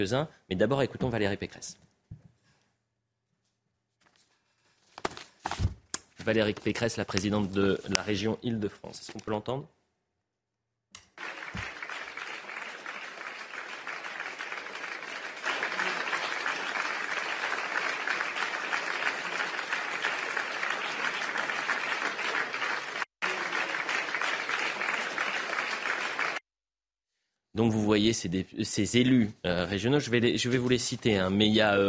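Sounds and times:
speech: 0.0s - 1.9s, 6.2s - 9.8s, 27.6s - 31.8s
standing ovation applause in regional council: 11.2s - 26.4s.

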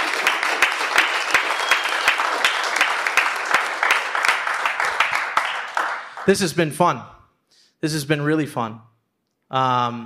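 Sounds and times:
round of applause: 0.0s - 6.4s
speech: 6.3s - 7.2s, 7.8s - 8.9s, 9.5s - 10.0s.

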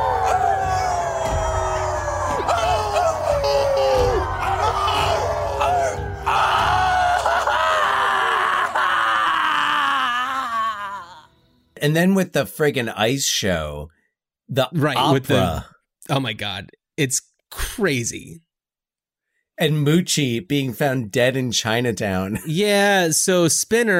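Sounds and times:
group of people howling together: 0.0s - 11.2s
speech: 11.8s - 18.5s, 19.6s - 23.9s.

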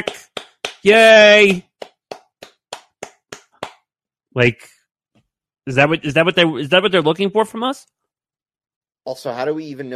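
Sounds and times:
speech: 0.0s - 1.7s, 4.4s - 4.7s, 5.6s - 8.0s, 9.0s - 9.9s
slow consolation hand clap: 0.0s - 3.8s.

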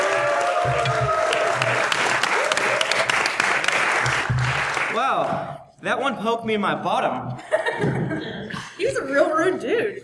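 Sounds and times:
high whoops: 0.0s - 3.2s
live show audience applause: 0.0s - 5.4s
speech: 0.6s - 1.1s, 5.1s - 10.0s.

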